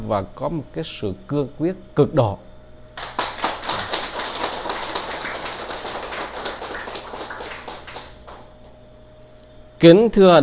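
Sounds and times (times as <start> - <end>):
speech: 0.0 - 3.2, 9.8 - 10.4
audience applause: 3.0 - 8.5.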